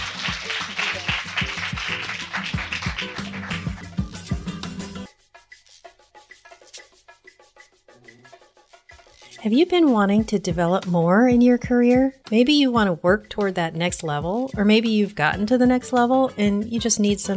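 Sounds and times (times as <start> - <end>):
audience applause: 0.0 - 4.4
speech: 9.4 - 17.3.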